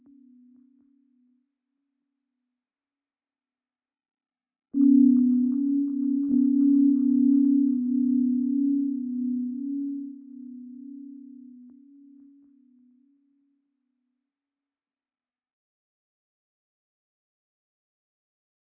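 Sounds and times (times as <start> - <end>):
slow music: 4.8 - 12.6.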